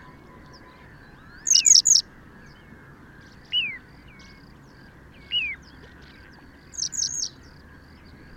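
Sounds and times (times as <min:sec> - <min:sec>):
western yellow wagtail calling: 0:00.0 - 0:02.0, 0:06.2 - 0:07.5.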